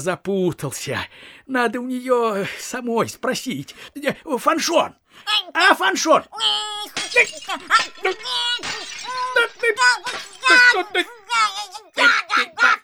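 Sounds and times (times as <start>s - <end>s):
speech: 0.0s - 12.8s
dishes being smashed: 6.6s - 11.8s.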